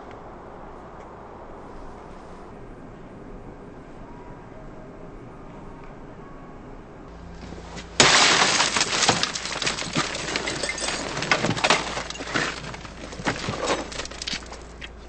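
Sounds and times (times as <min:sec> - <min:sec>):
car window smashing: 0:07.4 - 0:14.8
glass fragments crunching and tinkling: 0:08.0 - 0:14.7.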